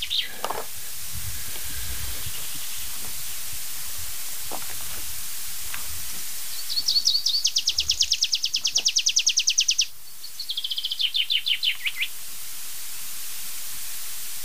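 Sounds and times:
tree pipit song during display flight: 0.0s - 0.6s, 2.2s - 3.1s, 6.5s - 12.1s.

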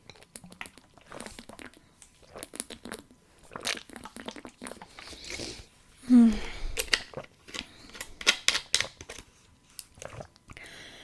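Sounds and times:
person drinking still water: 0.0s - 8.4s, 9.8s - 11.0s.

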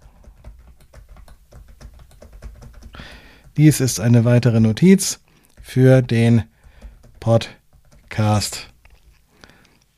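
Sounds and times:
braille keyboard key presses: 0.0s - 3.6s, 6.6s - 8.2s
speech: 3.0s - 6.5s, 7.2s - 7.6s, 8.2s - 8.7s.

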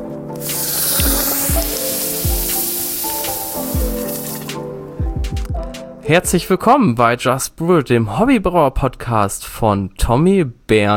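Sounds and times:
hot basalt stone from the fire sizzling in brewing wort: 0.3s - 4.6s
speech: 6.1s - 10.9s.

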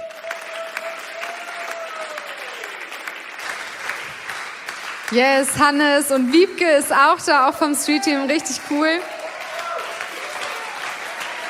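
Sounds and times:
audience applause: 0.0s - 11.4s
speech: 5.1s - 9.2s.

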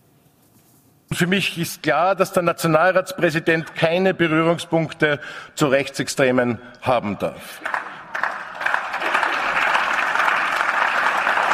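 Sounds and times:
speech: 1.2s - 7.8s
crowd applauding: 7.6s - 11.5s.

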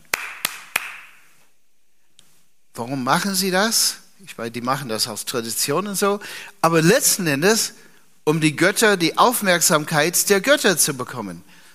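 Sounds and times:
hand clapping at a temple: 0.0s - 1.3s
speech: 2.8s - 11.6s.

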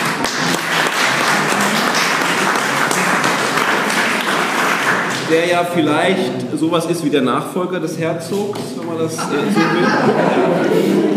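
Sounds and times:
audience applause: 0.0s - 5.6s
laughter: 0.3s - 4.2s, 9.2s - 11.1s
speech: 5.3s - 11.1s.

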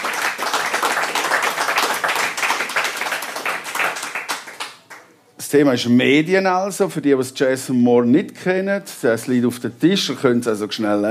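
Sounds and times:
audience applause: 0.0s - 5.0s
speech: 5.5s - 11.1s.

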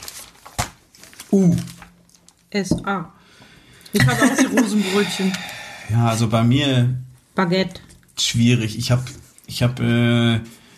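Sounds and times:
paper page turning: 0.0s - 2.3s
speech: 1.3s - 1.8s, 2.5s - 3.2s, 3.9s - 10.6s.

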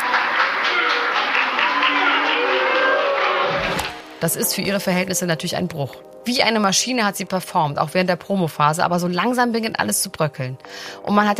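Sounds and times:
journalists booing: 0.0s - 3.9s
scattered claps: 0.0s - 4.2s
speech: 4.2s - 11.3s.

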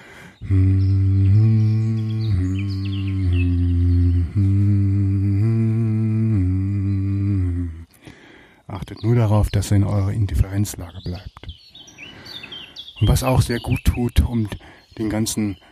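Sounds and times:
person humming in varying tones: 0.0s - 8.2s
speech: 0.4s - 0.8s, 9.2s - 11.5s, 13.0s - 15.6s.

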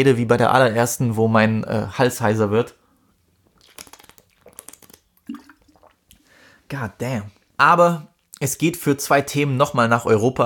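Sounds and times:
speech: 0.0s - 2.8s, 6.7s - 10.4s
person sipping a drink: 3.4s - 6.3s.

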